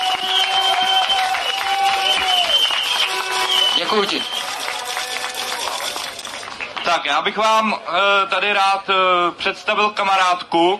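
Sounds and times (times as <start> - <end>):
audience applause: 0.0 - 7.0
speech: 3.9 - 4.4, 6.9 - 10.7.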